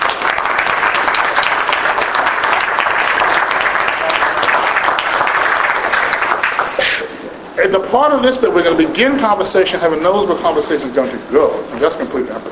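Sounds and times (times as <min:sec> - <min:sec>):
audience applause: 0:00.0 - 0:07.1
speech: 0:07.7 - 0:12.5.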